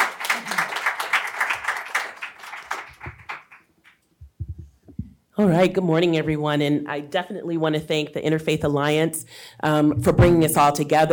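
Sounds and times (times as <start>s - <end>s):
crowd applause: 0.0s - 3.7s
speech: 5.4s - 11.1s.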